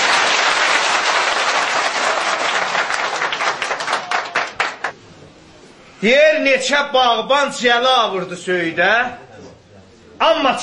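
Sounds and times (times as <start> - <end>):
audience applause after Azerbaijani-language verse recitation: 0.0 - 4.9
speech: 6.0 - 9.2, 10.2 - 10.6.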